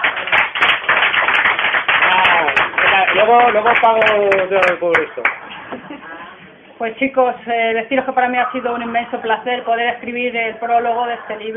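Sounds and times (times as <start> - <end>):
applause: 0.0 - 5.4
speech: 3.2 - 6.0, 6.8 - 11.5.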